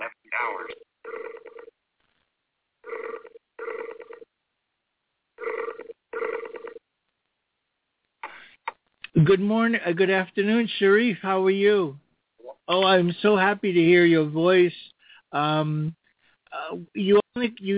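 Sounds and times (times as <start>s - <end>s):
phone line double-burst ringback tones: 1.1s - 1.7s, 2.9s - 4.2s, 5.4s - 6.8s
speech: 9.2s - 12.0s, 12.7s - 16.0s, 16.7s - 17.7s.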